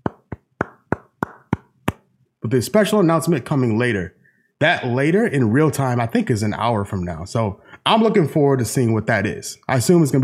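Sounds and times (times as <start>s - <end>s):
hand claps: 0.0s - 2.1s
speech: 2.5s - 10.2s.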